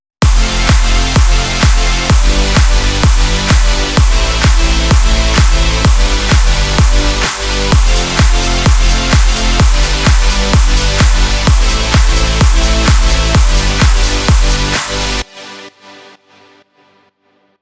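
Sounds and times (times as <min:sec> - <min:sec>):
beats: 0:00.2 - 0:15.2.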